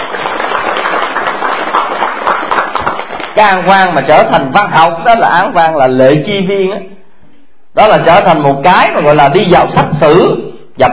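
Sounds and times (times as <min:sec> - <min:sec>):
audience applause: 0:00.0 - 0:03.6
speech: 0:03.4 - 0:06.9, 0:07.8 - 0:10.9.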